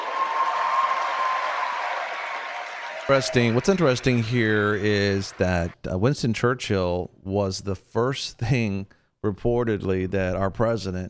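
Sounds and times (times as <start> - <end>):
crowd applauding: 0.0 - 5.8
speech: 3.1 - 11.0.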